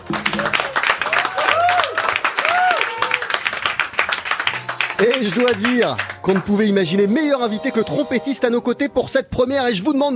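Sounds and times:
live audience applauding: 0.0s - 6.8s
speech: 0.1s - 0.7s, 5.0s - 10.1s.

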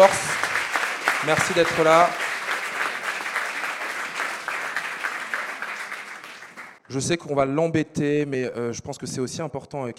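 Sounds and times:
speech: 0.0s - 0.2s, 1.2s - 2.2s, 6.9s - 9.9s
audience applause: 0.0s - 6.8s.

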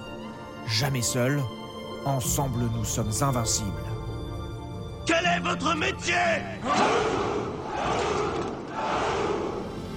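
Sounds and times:
speech: 0.7s - 4.0s, 5.1s - 8.2s
group of men shouting a battle cry: 6.6s - 9.7s.

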